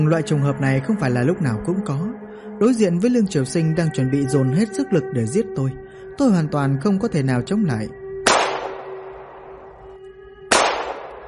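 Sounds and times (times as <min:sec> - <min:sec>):
speech: 0:00.0 - 0:08.0
gunshots: 0:08.3 - 0:09.6, 0:10.5 - 0:11.2.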